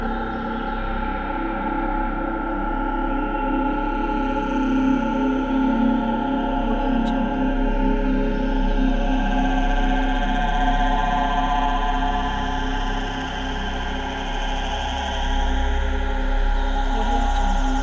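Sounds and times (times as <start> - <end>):
forest psychedelic ambient soundscape loop: 0.0 - 17.8.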